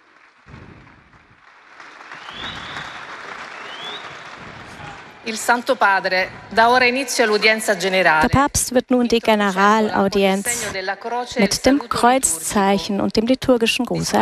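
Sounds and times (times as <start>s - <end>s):
audience applause for Pope Leo XIV at the general audience: 0.0s - 6.5s
speech: 5.2s - 14.1s.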